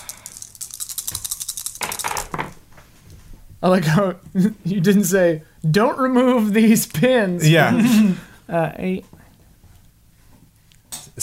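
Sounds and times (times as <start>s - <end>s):
dice being rolled: 0.0s - 2.6s
speech: 3.6s - 9.1s.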